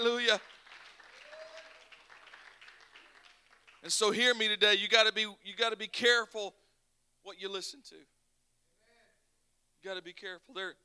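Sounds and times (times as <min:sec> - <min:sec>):
audience clapping hands: 0:00.0 - 0:04.3
speech: 0:00.2 - 0:00.6, 0:03.8 - 0:06.6, 0:07.2 - 0:08.1, 0:09.8 - 0:10.8.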